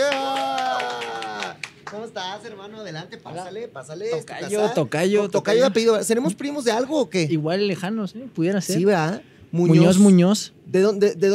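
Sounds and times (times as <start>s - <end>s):
studio applause: 0.0s - 2.2s
speech: 2.1s - 11.3s.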